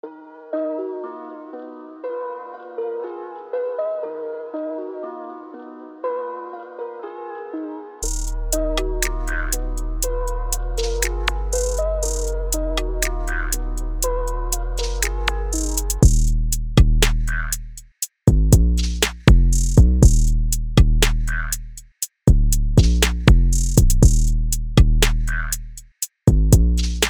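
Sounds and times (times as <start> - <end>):
trap beat: 8.0 - 27.0.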